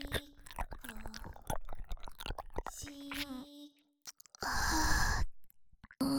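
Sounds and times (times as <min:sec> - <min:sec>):
ASMR ear licking sounds: 0:00.0 - 0:03.3, 0:04.1 - 0:05.2, 0:05.8 - 0:06.0.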